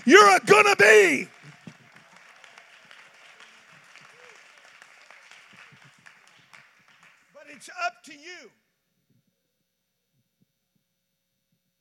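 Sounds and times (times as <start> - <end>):
speech: 0.0 - 1.4, 7.6 - 8.6
audience clapping hands: 0.0 - 8.3.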